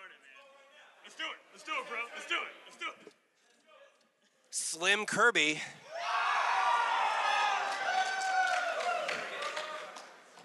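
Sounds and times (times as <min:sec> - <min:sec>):
speech: 0:01.1 - 0:03.2, 0:04.6 - 0:05.8
small group cheering and whooping: 0:05.9 - 0:10.1.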